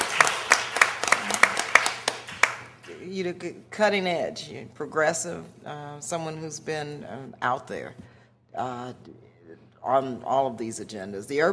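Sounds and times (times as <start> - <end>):
round of applause: 0.0 - 2.8
speech: 3.0 - 9.2, 9.8 - 11.5.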